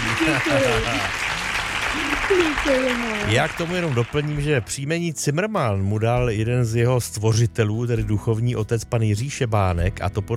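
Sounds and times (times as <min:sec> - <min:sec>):
crowd applause: 0:00.0 - 0:04.8
speech: 0:00.2 - 0:01.3, 0:01.9 - 0:10.3.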